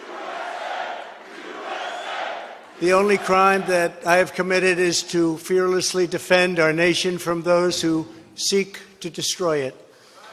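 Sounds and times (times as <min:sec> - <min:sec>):
crowd chanting USA: 0:00.0 - 0:03.9
speech: 0:02.8 - 0:09.8.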